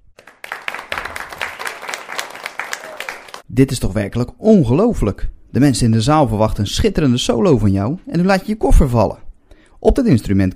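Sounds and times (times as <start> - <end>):
audience applause: 0.2 - 3.4
speech: 3.6 - 9.2, 9.8 - 10.5.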